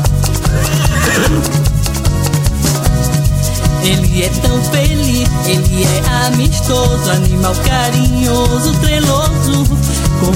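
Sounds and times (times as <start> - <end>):
bouncy children's music with steady beat and instrumental backing: 0.3 - 10.3
horse whinnying: 0.4 - 1.8
speech: 4.2 - 10.3.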